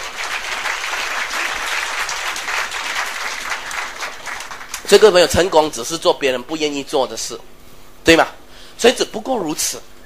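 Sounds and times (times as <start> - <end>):
audience applause: 0.0 - 4.9
speech: 4.9 - 9.9.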